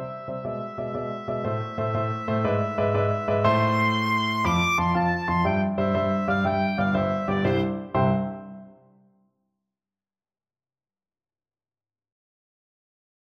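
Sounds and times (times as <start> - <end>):
oboe: 0.0 - 8.6.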